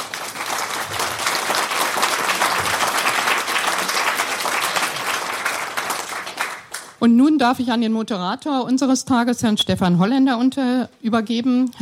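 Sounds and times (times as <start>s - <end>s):
audience applause: 0.0s - 7.0s
speech: 7.0s - 11.8s.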